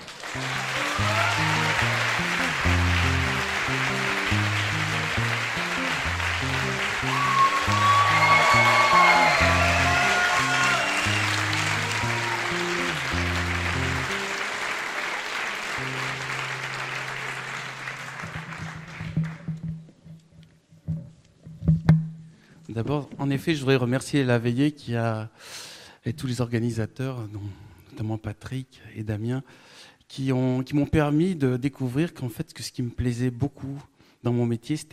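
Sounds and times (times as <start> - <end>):
audience applause: 0.0 - 19.5
pulsing rhythmic bass beat: 0.4 - 14.1
speech: 23.4 - 34.9.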